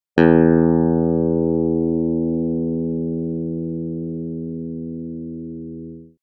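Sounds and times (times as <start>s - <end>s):
synthetic electric guitar: 0.2s - 6.2s.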